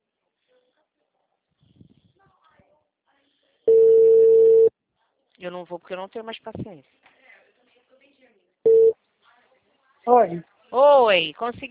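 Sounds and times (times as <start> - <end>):
telephone busy tone after a dropped call: 3.7 - 4.7, 8.7 - 8.9
speech: 5.4 - 7.0, 10.1 - 11.6.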